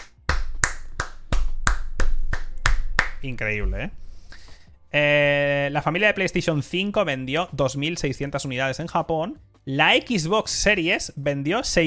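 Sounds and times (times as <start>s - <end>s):
clapping: 0.0s - 3.2s
speech: 3.2s - 4.0s, 4.9s - 11.8s.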